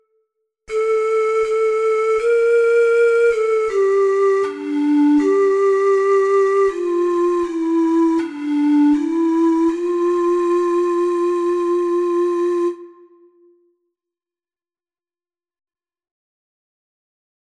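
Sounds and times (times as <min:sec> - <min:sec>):
four-hole ocarina: 0:00.7 - 0:13.7.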